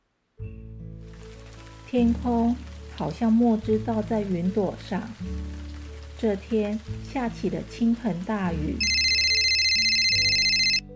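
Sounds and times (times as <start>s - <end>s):
speech: 1.9s - 5.6s, 6.2s - 9.0s
telephone ringing: 8.8s - 10.9s.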